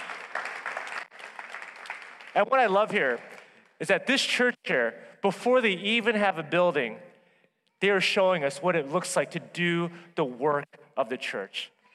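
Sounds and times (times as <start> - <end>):
church audience clapping: 0.0 - 3.8
speech: 2.4 - 7.1, 7.8 - 11.8.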